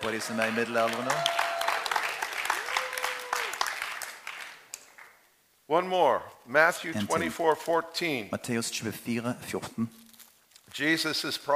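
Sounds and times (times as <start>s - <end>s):
speech: 0.0s - 1.4s, 5.7s - 10.0s, 10.8s - 11.5s
audience applause: 0.0s - 5.1s.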